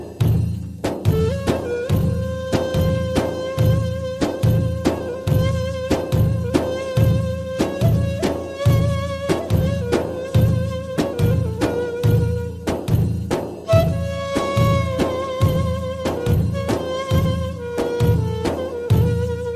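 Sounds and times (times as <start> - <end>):
arabian sands music: 0.0 - 19.5.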